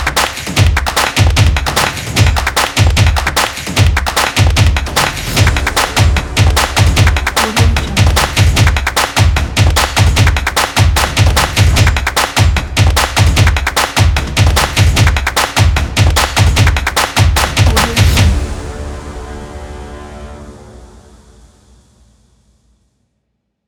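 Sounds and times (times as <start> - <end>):
drumming: 0.0 - 18.6.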